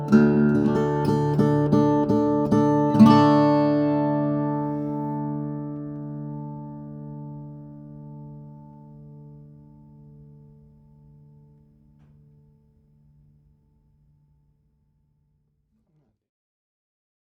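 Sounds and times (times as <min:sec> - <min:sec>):
steel-string flattop guitar: 0:00.0 - 0:12.6.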